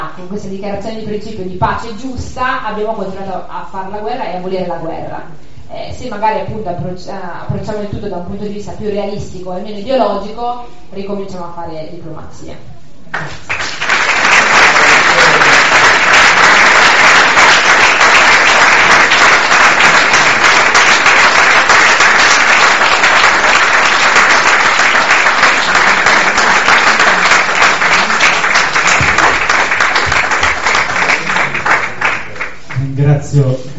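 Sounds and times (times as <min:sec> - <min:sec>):
speech: 0:00.1 - 0:13.5, 0:33.1 - 0:33.7
audience applause: 0:13.2 - 0:32.8.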